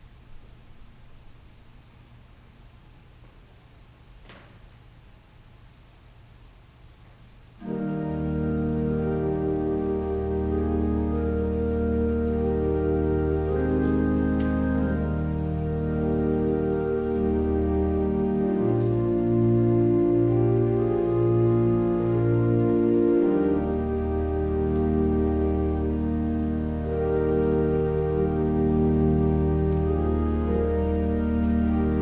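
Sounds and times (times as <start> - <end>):
organ music: 7.6 - 32.0.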